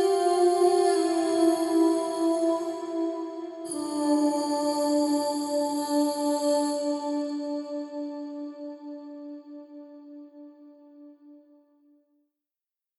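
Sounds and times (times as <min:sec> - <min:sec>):
woman singing with piano reverb: 0:00.0 - 0:10.2.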